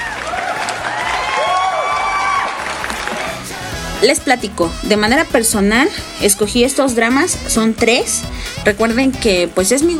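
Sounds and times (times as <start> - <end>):
applause: 0.0 - 3.5
cheering: 0.0 - 3.5
speech: 4.0 - 9.9.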